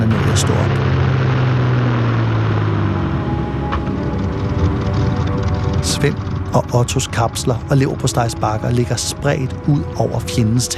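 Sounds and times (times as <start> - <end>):
English bomber aircraft engines droning: 0.0 - 10.7
speech: 0.4 - 1.0, 6.0 - 10.7.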